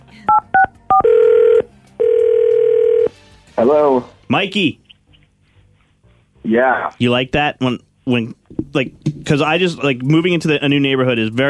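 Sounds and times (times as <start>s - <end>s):
touch-tone beeps of a phone being dialed: 0.3s - 1.6s
long buzzing phone ring tones: 0.3s - 3.1s
speech: 3.6s - 4.8s, 6.5s - 11.4s.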